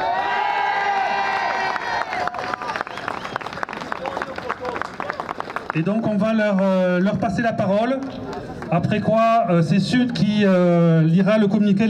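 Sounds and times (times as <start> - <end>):
audience applauding: 0.2 - 5.9
speech: 5.8 - 11.8.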